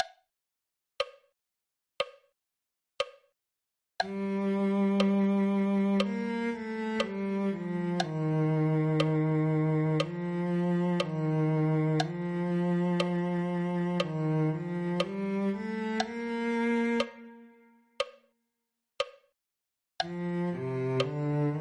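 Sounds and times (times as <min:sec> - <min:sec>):
cello: 0:04.0 - 0:17.8, 0:20.0 - 0:21.5.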